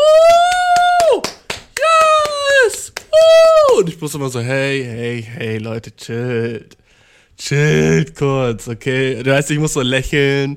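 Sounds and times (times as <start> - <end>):
long loud sustained vocal whoops: 0.0 - 3.9
rhythmic hand claps: 0.0 - 4.0
speech: 4.0 - 6.8, 7.4 - 10.5.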